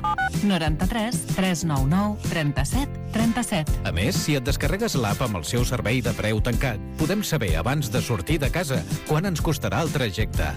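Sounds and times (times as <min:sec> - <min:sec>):
dual-tone telephone dialing beeps: 0:00.0 - 0:00.4
speech: 0:00.4 - 0:10.5.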